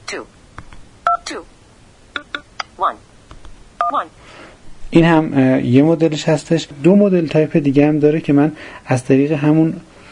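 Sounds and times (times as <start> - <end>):
speech: 0.1 - 0.4, 1.3 - 1.6, 2.8 - 3.1, 3.9 - 9.9
phone keypad dialing tone: 3.8 - 4.0.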